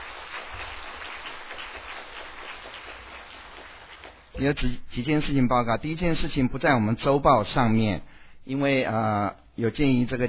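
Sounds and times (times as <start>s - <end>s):
group applauding: 0.0s - 4.4s
speech: 4.4s - 10.2s.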